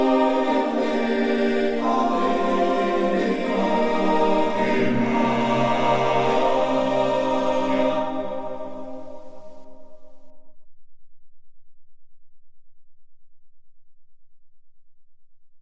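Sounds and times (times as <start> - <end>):
choir singing: 0.0 - 10.1.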